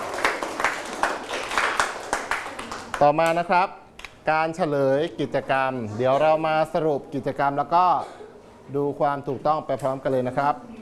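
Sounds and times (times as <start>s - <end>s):
students applauding themselves: 0.0s - 3.2s
speech: 3.0s - 10.7s.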